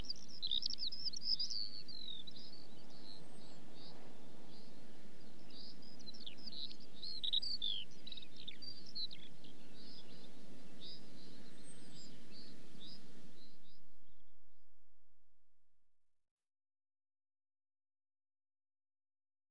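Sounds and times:
skylark song-flight: 0:00.0 - 0:14.2.

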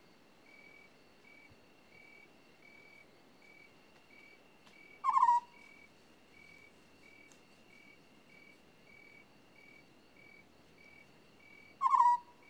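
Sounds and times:
African scops owl rolling purrs: 0:05.0 - 0:05.6, 0:11.8 - 0:12.3.

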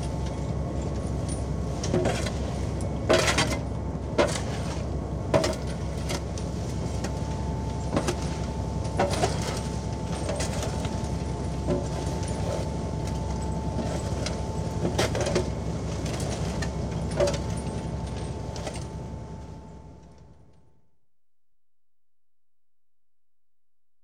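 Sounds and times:
beam fishing trawler collecting nets: 0:00.8 - 0:19.0.

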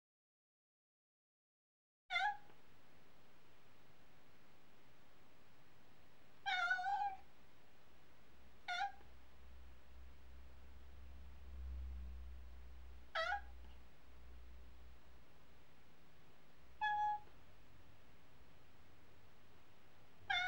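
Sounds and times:
domestic cat meowing: 0:02.1 - 0:02.5, 0:06.4 - 0:07.2, 0:08.7 - 0:09.1, 0:13.1 - 0:13.6, 0:16.8 - 0:17.4, 0:20.2 - 0:20.4.

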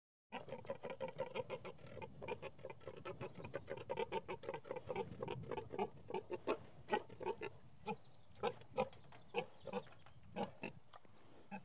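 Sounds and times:
several pigs grunting in a field: 0:00.3 - 0:10.8.

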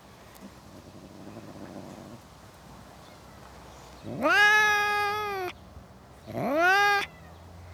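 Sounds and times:
domestic cat meowing in a suburban garden: 0:04.2 - 0:05.5, 0:06.4 - 0:07.1.

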